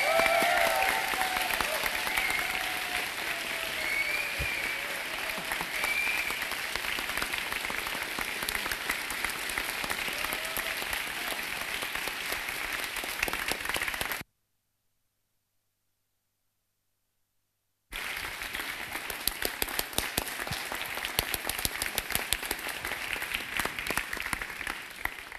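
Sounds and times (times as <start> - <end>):
audience applause: 0.0 - 14.2, 17.9 - 25.3.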